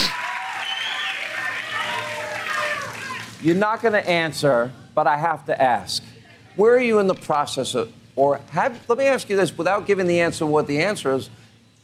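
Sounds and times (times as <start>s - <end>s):
audience applause: 0.0s - 3.9s
speech: 3.4s - 11.4s.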